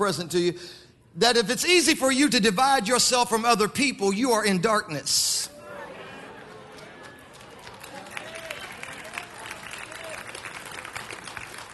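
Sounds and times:
speech: 0.0s - 5.6s
audience clapping: 6.4s - 11.7s.

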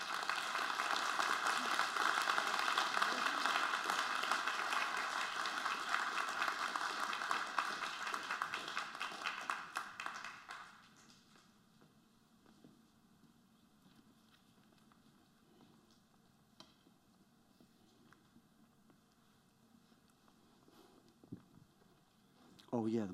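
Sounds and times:
audience applauding as four mothers come forward: 0.0s - 11.1s.

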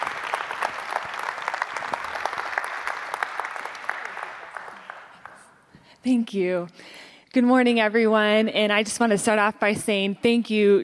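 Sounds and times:
audience applause: 0.0s - 5.6s
speech: 6.0s - 10.8s.

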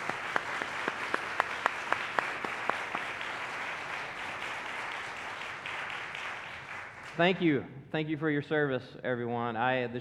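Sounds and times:
audience applause for military members: 0.0s - 7.2s
speech: 7.2s - 9.9s.

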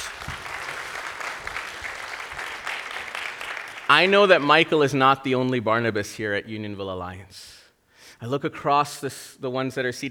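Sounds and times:
crowd clapping: 0.0s - 5.0s
speech: 3.9s - 7.6s, 8.2s - 10.0s.

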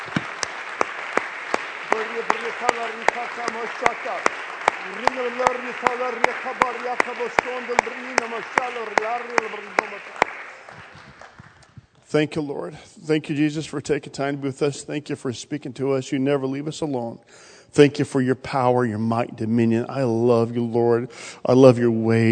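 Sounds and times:
audience clapping hands: 0.0s - 11.8s
speech: 1.9s - 10.9s, 12.1s - 22.3s.

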